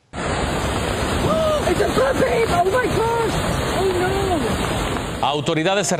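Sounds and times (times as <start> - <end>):
flash flood water rushing in a canyon: 0.0 - 5.9
people calling out: 1.2 - 4.6
speech: 1.7 - 3.3, 5.2 - 5.9.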